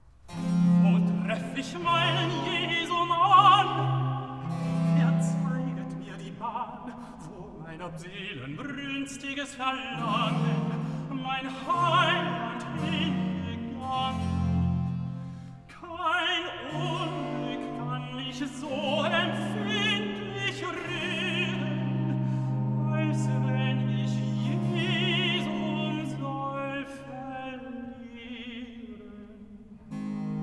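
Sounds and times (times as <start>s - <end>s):
tenor singing recitative: 0.3s - 30.3s.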